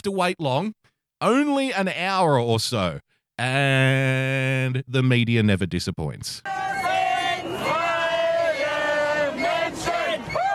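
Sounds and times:
speech: 0.0 - 6.8
protest crowd chanting: 6.4 - 10.5.

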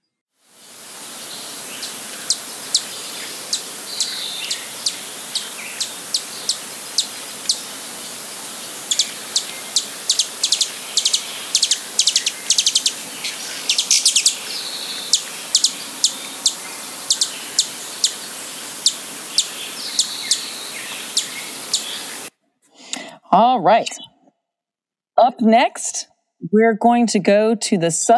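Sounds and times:
steady hiss: 0.5 - 22.3
Broad-tailed Hummingbird calls: 0.6 - 22.3
speech: 23.6 - 24.0, 25.3 - 28.1.

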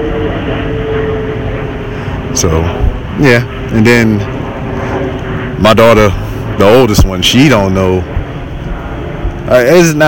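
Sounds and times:
airplane passing overhead: 0.0 - 10.0
speech: 2.4 - 4.4, 5.6 - 8.2, 9.5 - 10.0.

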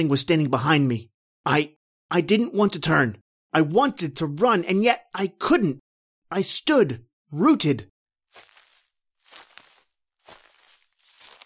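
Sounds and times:
speech: 0.0 - 8.5
slow footsteps rustling through grass: 8.3 - 11.4.

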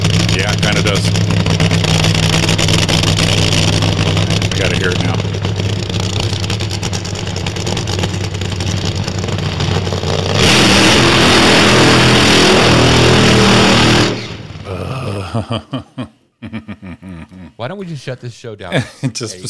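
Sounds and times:
car doing a burnout with spinning tires: 0.0 - 14.6
laughter: 14.7 - 17.6, 18.6 - 19.4
speech: 15.4 - 16.0, 17.7 - 19.4.

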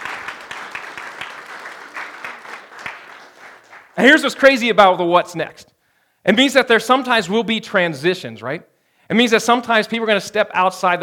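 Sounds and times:
audience round of applause: 0.0 - 4.0
speech: 4.0 - 11.0.

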